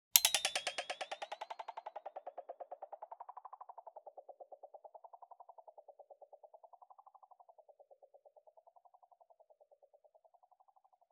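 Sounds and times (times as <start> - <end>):
click with delay modulation: 0.2 - 5.7.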